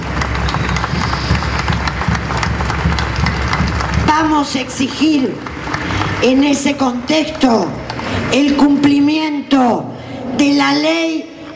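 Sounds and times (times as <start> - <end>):
crowd applause: 0.0 - 8.3
speech: 4.2 - 5.5, 6.2 - 11.5.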